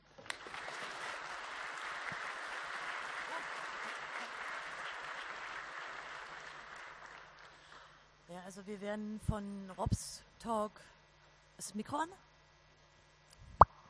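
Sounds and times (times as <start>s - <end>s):
crowd applauding: 0.2s - 7.9s
speech: 8.4s - 11.0s, 11.6s - 12.3s.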